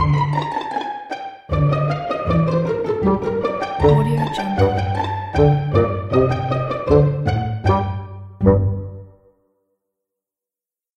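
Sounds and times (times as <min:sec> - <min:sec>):
sneaky pizzicato and bassoon comedy music: 0:00.0 - 0:09.3.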